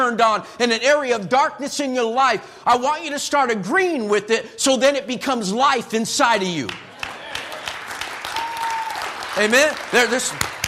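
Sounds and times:
speech: 0.0s - 6.9s, 9.4s - 10.6s
crowd clapping: 6.6s - 10.6s.

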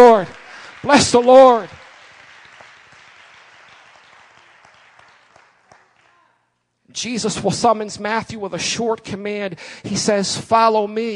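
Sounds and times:
people clapping in praise: 0.0s - 6.6s
speech: 0.8s - 1.8s, 6.9s - 11.1s.

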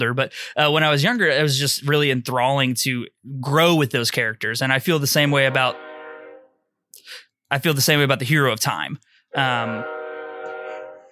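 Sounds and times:
speech: 0.0s - 5.9s, 7.5s - 10.0s
video game train whistle: 5.5s - 6.6s, 9.6s - 11.1s.

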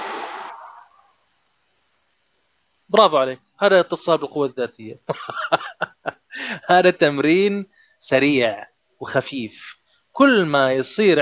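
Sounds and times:
deep breath from a morning breathing exercise: 0.0s - 1.2s, 6.3s - 6.6s, 7.7s - 8.0s
speech: 2.9s - 5.6s, 6.4s - 11.2s
laughter: 5.1s - 6.6s.

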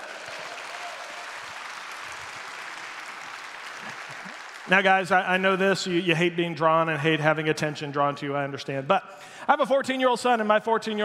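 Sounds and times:
crowd applause: 0.0s - 6.0s
speech: 4.7s - 11.0s.

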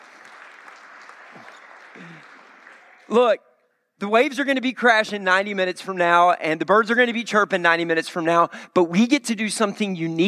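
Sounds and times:
church audience clapping: 0.0s - 3.3s
speech: 2.0s - 2.4s, 3.1s - 10.2s.

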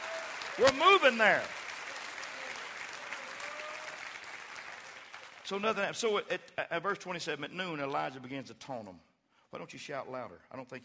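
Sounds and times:
audience clapping hands: 0.0s - 6.1s
speech: 0.6s - 1.6s, 5.5s - 10.8s.

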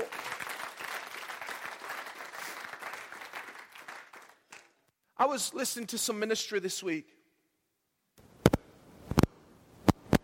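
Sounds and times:
round of applause: 0.0s - 4.9s
speech: 5.2s - 7.2s.

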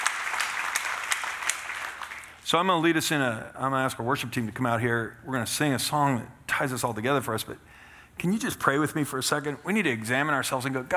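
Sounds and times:
audience applauding: 0.0s - 2.4s
speech: 2.5s - 10.9s.

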